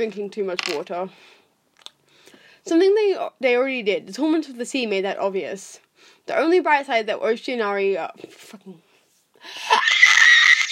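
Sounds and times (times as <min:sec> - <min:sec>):
speech: 0:00.0 - 0:01.4, 0:02.6 - 0:09.9
person imitating a pterodactyl screech: 0:09.7 - 0:10.7.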